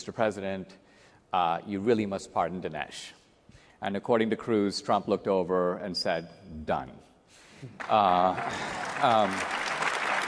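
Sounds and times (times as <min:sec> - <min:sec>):
speech: 0:00.0 - 0:03.2, 0:03.8 - 0:09.6
audience applause: 0:07.8 - 0:10.2.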